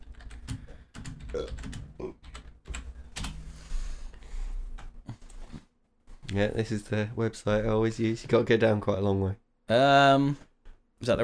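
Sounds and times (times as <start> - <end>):
typing a Google search on a computer keyboard: 0.0 - 3.4
speech: 1.4 - 2.1, 6.3 - 11.2.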